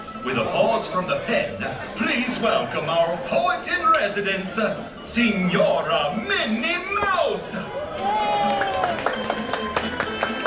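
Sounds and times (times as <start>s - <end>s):
speech: 0.2s - 9.2s
restaurant crowd clapping: 8.0s - 10.4s.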